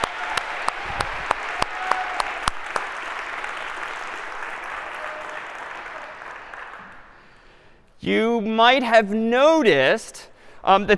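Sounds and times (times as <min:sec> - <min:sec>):
round of applause: 0:00.0 - 0:07.5
speech: 0:08.1 - 0:10.9.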